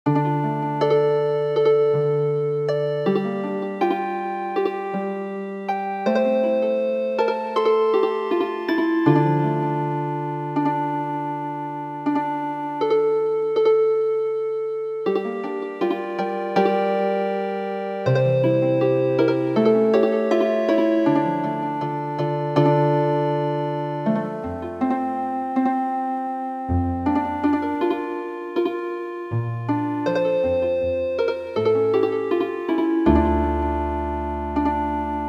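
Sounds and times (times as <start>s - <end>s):
healing harp music: 0.1s - 35.2s.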